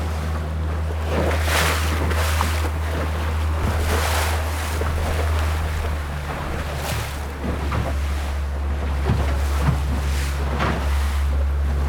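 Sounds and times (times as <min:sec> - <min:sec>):
small boat low drone on a coastal voyage: 0:00.0 - 0:11.8
water washing and splashing against a small boat hull: 0:00.0 - 0:11.8.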